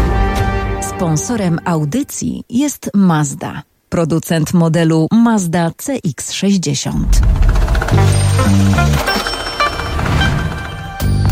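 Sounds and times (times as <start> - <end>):
speech: 1.0 - 9.4
economics segment signal jingle: 7.8 - 11.3.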